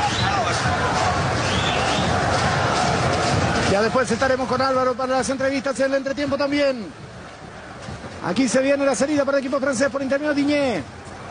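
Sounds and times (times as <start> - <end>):
Paraguay fans cheering in a football stadium during a match against France: 0.0 - 6.0
speech: 3.8 - 7.0, 8.2 - 11.0.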